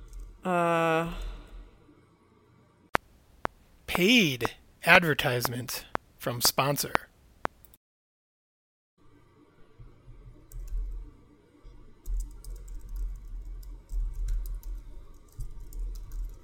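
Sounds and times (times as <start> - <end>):
speech: 0.5 - 1.2, 3.9 - 7.1
typing on computer keyboard: 12.1 - 16.4.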